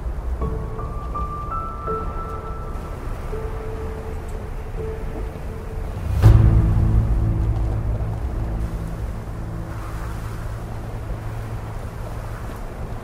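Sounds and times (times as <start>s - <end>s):
steady roar of wind and snow: 0.0s - 13.0s
epic music: 0.4s - 12.8s.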